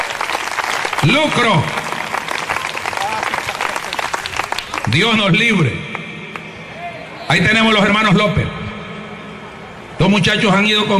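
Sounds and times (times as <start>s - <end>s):
church congregation applauding during a service: 0.0s - 5.3s
speech: 1.0s - 1.8s, 4.9s - 6.0s, 7.3s - 8.6s, 10.0s - 10.9s.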